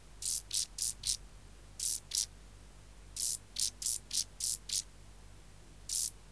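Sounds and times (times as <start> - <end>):
Chorthippus brunneus chirping: 0.2 - 2.4, 3.1 - 4.9, 5.8 - 6.2.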